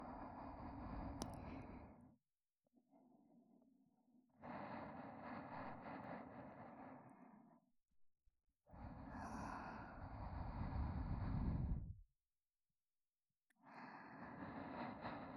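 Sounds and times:
looping sleep companion audio track with reversed position: 0.0 - 2.1, 4.3 - 7.6, 8.8 - 12.0, 13.7 - 15.3.

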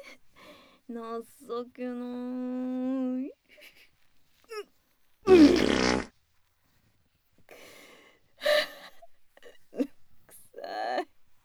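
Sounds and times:
speech: 0.9 - 3.8
fart: 5.3 - 6.1.

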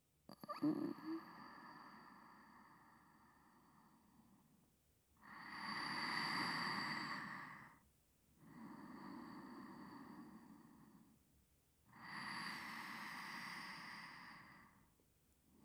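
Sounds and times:
person breathing in sleep on left side: 0.5 - 4.0, 5.2 - 7.8, 8.5 - 11.1, 11.9 - 14.9.

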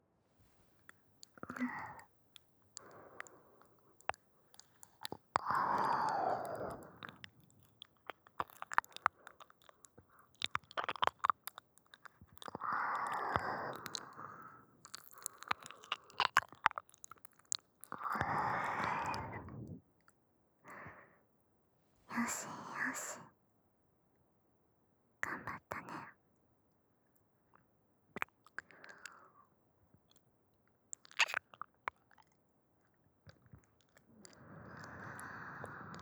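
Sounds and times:
left ear licking: 1.2 - 19.3, 31.0 - 32.3, 33.3 - 36.0
whispering: 1.4 - 2.0, 18.7 - 19.8, 22.1 - 23.3, 25.2 - 26.2.

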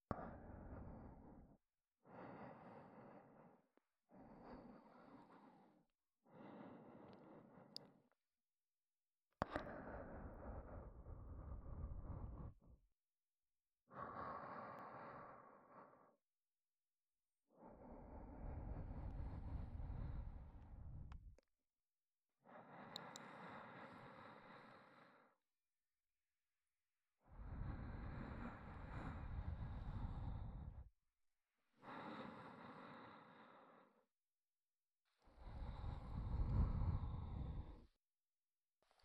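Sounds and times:
ASMR breathy sighs: 0.1 - 8.2, 9.4 - 12.8, 13.9 - 16.2, 17.5 - 21.5, 22.4 - 25.4, 27.2 - 30.9, 31.6 - 34.1, 35.2 - 38.0.

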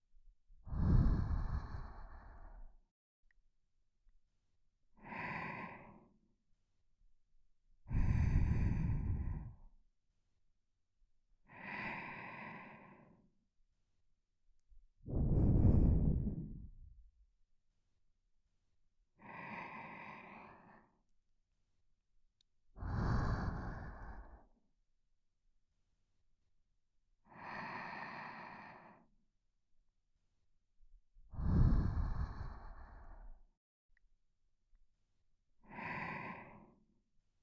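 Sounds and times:
person breathing in sleep: 0.6 - 2.8, 5.0 - 6.2, 7.9 - 9.7, 11.4 - 13.3, 15.1 - 17.0, 19.2 - 21.0, 22.8 - 24.6, 27.3 - 29.1, 31.3 - 33.4, 35.6 - 36.9.

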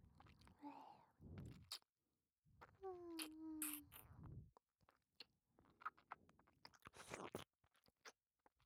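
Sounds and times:
wet licking mouth sounds: 1.4 - 1.9, 2.6 - 8.2.

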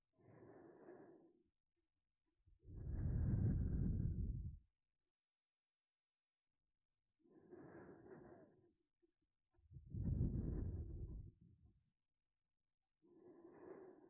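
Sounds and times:
sleep breathing loop: 0.2 - 1.3, 2.7 - 4.6, 7.3 - 8.7, 9.8 - 11.4, 13.1 - 14.0.

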